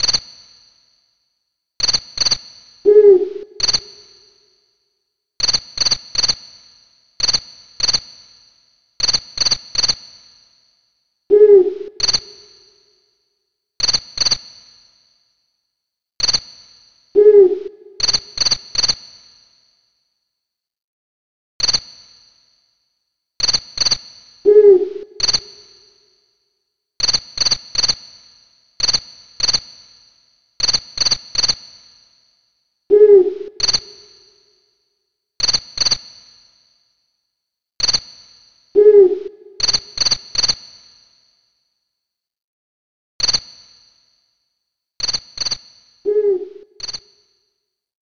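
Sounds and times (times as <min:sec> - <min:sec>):
crickets chirping: 0:02.2 - 0:04.7, 0:10.6 - 0:12.8, 0:17.2 - 0:18.6, 0:24.5 - 0:26.4, 0:32.1 - 0:34.7, 0:38.5 - 0:40.5, 0:45.4 - 0:47.2
owl hooting: 0:02.9 - 0:04.2, 0:11.3 - 0:12.6, 0:17.2 - 0:18.4, 0:24.5 - 0:25.9, 0:32.9 - 0:34.2, 0:38.8 - 0:40.0, 0:46.1 - 0:47.0.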